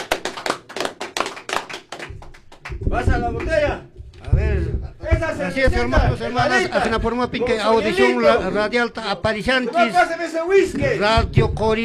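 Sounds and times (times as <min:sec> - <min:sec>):
rhythmic clapping at a peasant farmers' league gathering: 0:00.0 - 0:07.6
speech: 0:02.9 - 0:03.9, 0:04.6 - 0:11.8.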